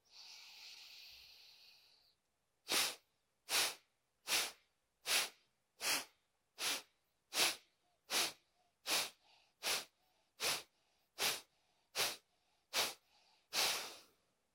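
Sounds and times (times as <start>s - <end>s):
long airy inhale during a breathing exercise: 0.0s - 14.2s
forceful puffing exhales during a breathing exercise: 2.7s - 14.2s.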